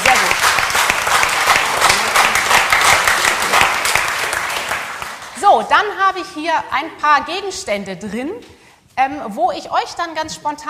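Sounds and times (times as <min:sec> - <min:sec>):
audience applause: 0:00.0 - 0:05.4
speech: 0:05.6 - 0:10.6.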